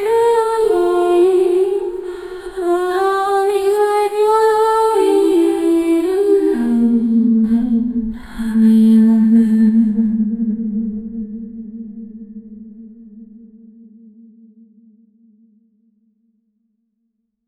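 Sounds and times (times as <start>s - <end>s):
female singers singing: 0.0s - 10.5s.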